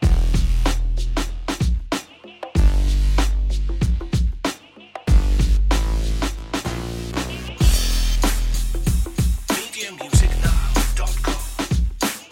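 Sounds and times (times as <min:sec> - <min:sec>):
bass: 0:00.0 - 0:02.0, 0:02.6 - 0:04.4, 0:05.1 - 0:09.4, 0:10.2 - 0:12.0
drums: 0:00.0 - 0:12.3.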